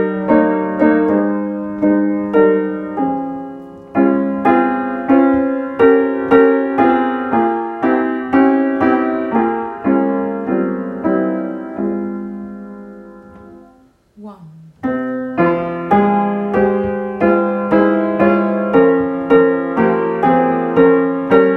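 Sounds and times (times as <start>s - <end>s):
Dutch song with piano accompaniment: 0.0s - 14.0s, 14.8s - 21.5s.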